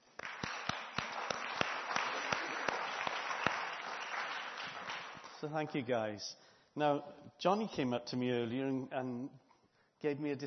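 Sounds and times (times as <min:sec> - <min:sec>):
audience applause: 0:00.0 - 0:05.5
speech: 0:05.4 - 0:09.4, 0:10.0 - 0:10.4.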